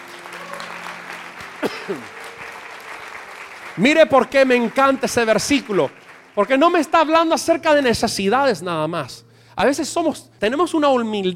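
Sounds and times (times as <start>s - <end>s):
audience applause: 0.0s - 7.0s
speech: 1.9s - 2.2s, 3.8s - 11.3s.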